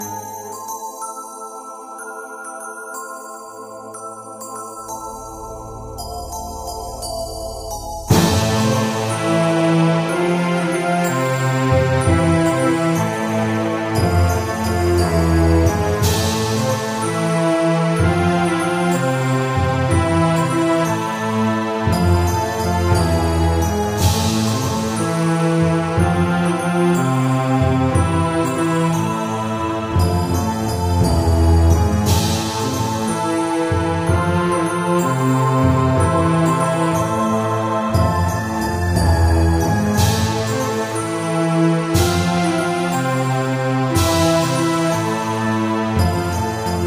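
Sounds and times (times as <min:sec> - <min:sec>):
end game music: 0:05.4 - 0:46.8.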